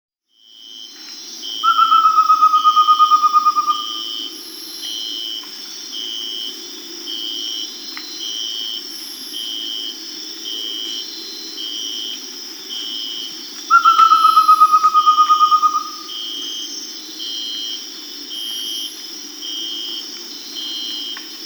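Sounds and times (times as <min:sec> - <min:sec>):
Amazonian pygmy owl whistling in South America: 0:01.6 - 0:04.4, 0:13.7 - 0:16.2.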